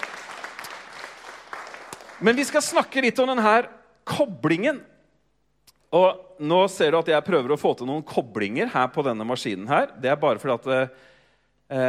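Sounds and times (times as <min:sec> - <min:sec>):
people clapping: 0:00.0 - 0:02.9
speech: 0:02.2 - 0:04.9, 0:05.9 - 0:11.1, 0:11.7 - 0:11.8.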